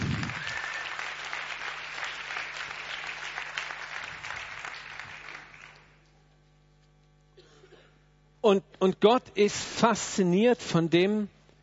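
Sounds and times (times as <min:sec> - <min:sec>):
audience applause: 0:00.0 - 0:06.0
speech: 0:08.5 - 0:11.4.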